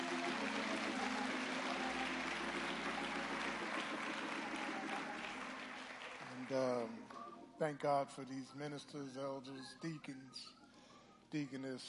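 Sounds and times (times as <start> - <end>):
audience clapping for a choir: 0.0 - 7.3
speech: 6.5 - 10.6, 11.3 - 11.8.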